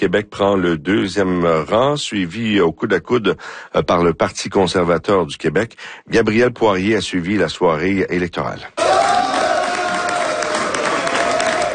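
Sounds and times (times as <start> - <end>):
speech: 0.0 - 8.8
supporters cheering at victory celebration: 8.8 - 11.7.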